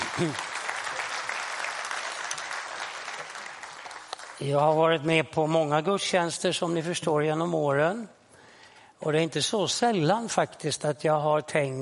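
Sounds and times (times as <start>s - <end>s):
audience applause: 0.0s - 4.8s
speech: 0.2s - 0.5s, 4.4s - 8.2s, 9.0s - 11.8s.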